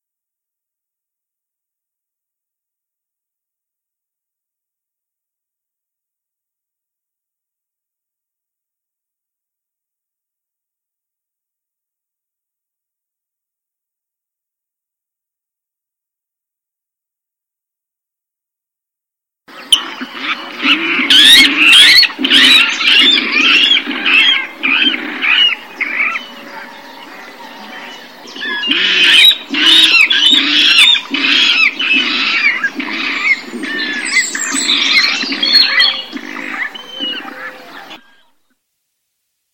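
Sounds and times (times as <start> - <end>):
water rail Rallus aquaticus calling: 19.7 - 38.2.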